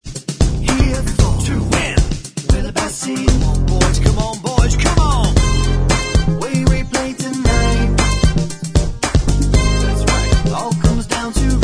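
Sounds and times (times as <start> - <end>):
instrumental backing track: 0.2 - 11.6.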